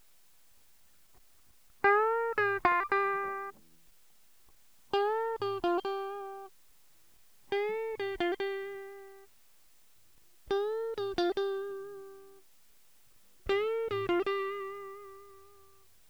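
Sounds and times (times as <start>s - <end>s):
guitar: 1.8s - 3.6s, 4.9s - 6.5s, 7.5s - 9.3s, 10.5s - 12.4s, 13.4s - 15.8s.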